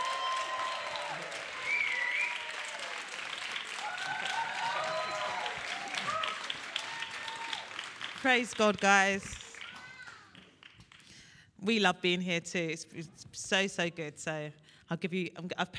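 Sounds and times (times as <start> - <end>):
people cheering: 0.0 - 10.6
church audience clapping: 0.0 - 11.3
speech: 8.2 - 9.4, 11.7 - 15.7.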